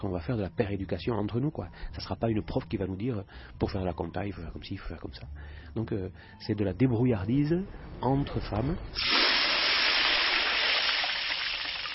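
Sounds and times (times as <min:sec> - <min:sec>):
speech: 0:00.0 - 0:09.5
palm oil thrown into water for soap making: 0:09.0 - 0:11.9.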